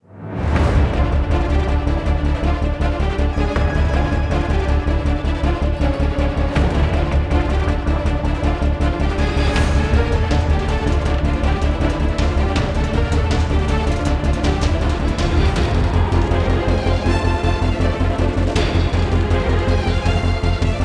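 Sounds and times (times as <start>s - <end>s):
carnival action music: 0.2s - 20.8s.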